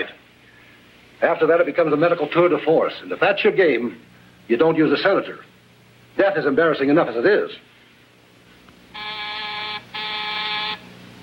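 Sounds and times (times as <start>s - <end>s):
speech: 1.2s - 5.5s, 6.2s - 7.7s
telephone ringing: 8.9s - 10.9s.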